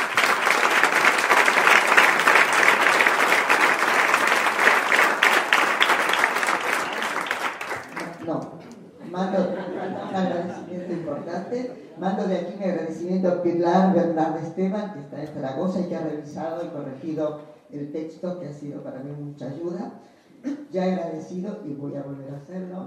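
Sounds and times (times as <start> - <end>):
audience applause: 0.0 - 8.3
laughter: 8.9 - 12.0
speech: 11.5 - 22.8.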